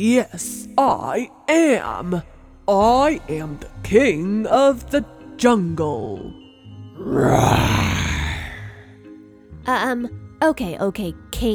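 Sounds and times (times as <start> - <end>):
speech: 0.0 - 6.4, 7.0 - 8.0, 9.6 - 11.5
person's voice imitating a lion's roar: 7.0 - 8.8.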